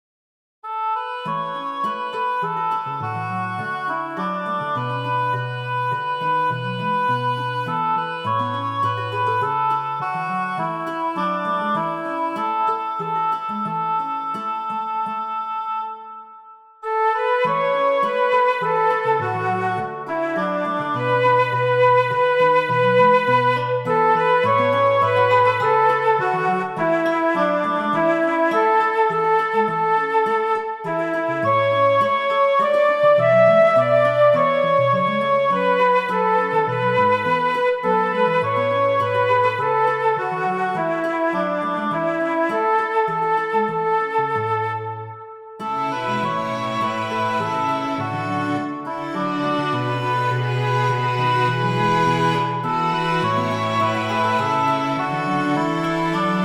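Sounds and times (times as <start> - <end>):
small ensemble playing: 0.8 - 16.1, 16.9 - 30.2, 30.9 - 41.4, 42.0 - 44.6, 45.6 - 56.4.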